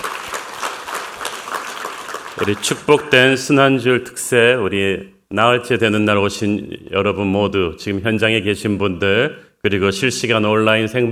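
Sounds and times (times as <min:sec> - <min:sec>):
audience applause: 0:00.0 - 0:03.0
speech: 0:02.4 - 0:11.0.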